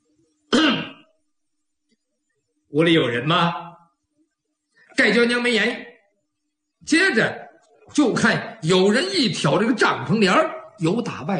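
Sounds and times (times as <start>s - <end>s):
soft cough outside a tent door: 0.5s - 1.1s
speech: 2.7s - 3.6s, 5.0s - 5.9s, 6.8s - 11.3s.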